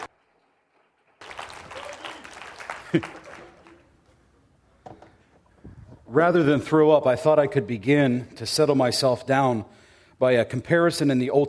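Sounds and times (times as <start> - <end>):
audience applause and cheering: 0.0 - 4.0
speech: 2.9 - 3.2, 6.1 - 11.4.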